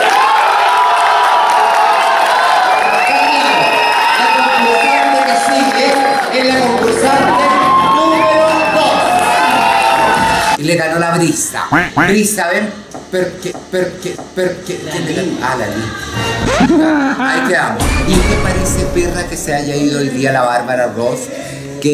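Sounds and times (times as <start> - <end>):
audience applause: 0.0 - 10.6
speech: 10.7 - 21.9
laughter: 16.4 - 17.8.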